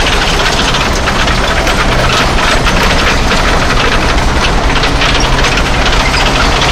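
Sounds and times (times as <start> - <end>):
tanks with heavy tracks at speed: 0.0 - 6.7.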